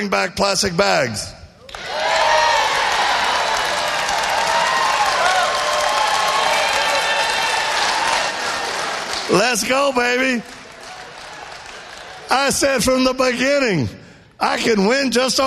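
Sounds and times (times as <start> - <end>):
speech: 0.0 - 1.9, 9.3 - 10.6, 12.3 - 15.4
crowd applause: 1.7 - 12.6.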